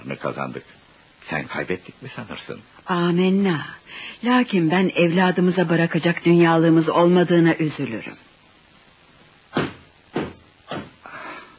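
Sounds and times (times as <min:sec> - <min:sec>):
speech: 0:00.1 - 0:08.3
knocking on a door: 0:09.6 - 0:11.0.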